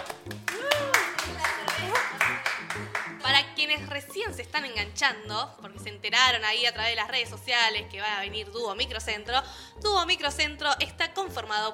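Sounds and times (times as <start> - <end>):
rhythmic clapping from a group: 0.0 - 3.5
voices whooping and calling: 0.5 - 1.2
speech: 3.9 - 11.7.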